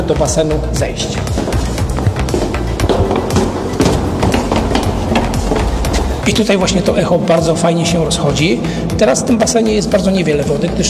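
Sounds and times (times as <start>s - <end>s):
speech: 0.0s - 1.5s, 6.3s - 10.8s
metal clanks and knocks of vault hatch: 0.6s - 9.6s
heavy metal vault hatch being hauled open, grinding and scraping: 1.1s - 9.7s.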